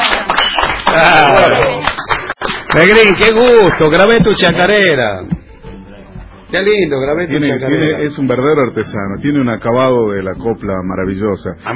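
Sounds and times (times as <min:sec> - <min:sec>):
audience applause: 0:00.0 - 0:04.5
speech: 0:01.0 - 0:01.6, 0:02.8 - 0:05.4, 0:06.5 - 0:11.7.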